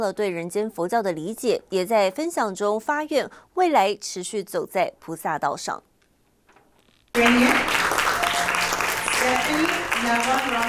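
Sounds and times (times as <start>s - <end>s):
speech: 0.0s - 5.9s, 7.2s - 7.6s, 9.2s - 10.6s
warm applause: 7.2s - 10.6s.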